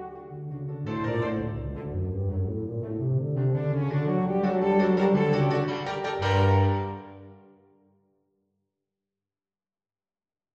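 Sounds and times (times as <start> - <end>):
tarantella miniature: 0.0 - 7.4.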